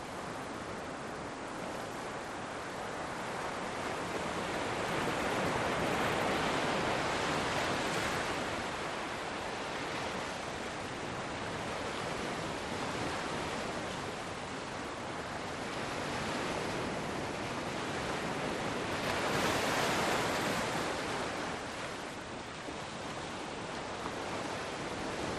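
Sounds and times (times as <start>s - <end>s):
wind on a beach: 0.0s - 25.3s
waves breaking on a beach in a cove at night: 0.2s - 25.3s.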